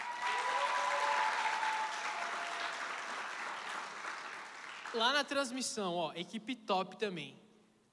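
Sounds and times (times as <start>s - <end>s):
audience applause: 0.0s - 5.0s
speech: 4.9s - 7.9s.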